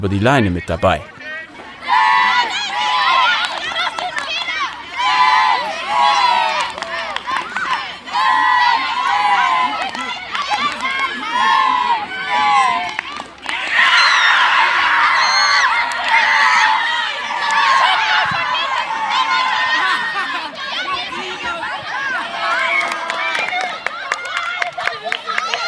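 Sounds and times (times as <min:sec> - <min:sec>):
speech: 0:00.0 - 0:01.2
students shouting and cheering at school sports day: 0:00.0 - 0:25.6
clapping: 0:03.3 - 0:04.9, 0:06.2 - 0:07.9, 0:08.8 - 0:11.6, 0:12.5 - 0:14.1, 0:15.8 - 0:16.3, 0:22.5 - 0:25.6.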